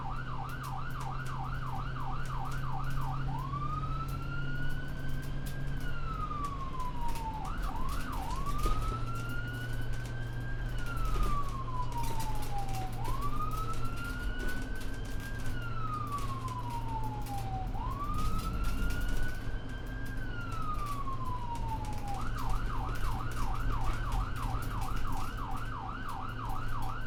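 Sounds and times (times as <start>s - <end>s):
ambulance driving with siren: 0.0s - 27.0s.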